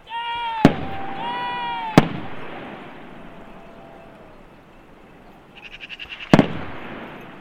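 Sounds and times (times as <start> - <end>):
gunshots from hunters: 0.6 - 4.2, 6.1 - 7.4.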